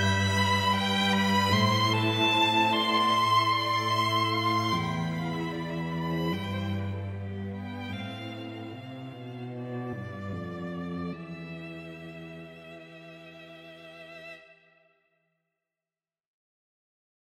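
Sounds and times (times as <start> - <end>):
string quartet playing a medieval Phrygian canon requiem: 0.0 - 14.4.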